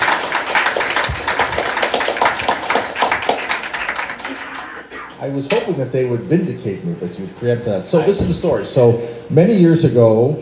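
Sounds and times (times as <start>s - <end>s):
audience clapping: 0.0s - 5.2s
speech: 5.2s - 10.4s.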